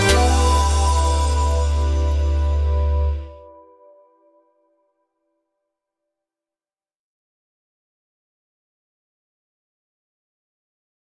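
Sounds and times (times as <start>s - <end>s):
jingle: 0.2s - 3.3s.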